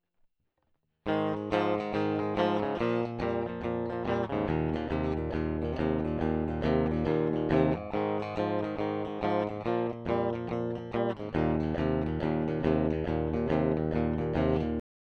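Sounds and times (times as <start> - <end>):
clean guitar through combo amp: 1.1 - 14.8.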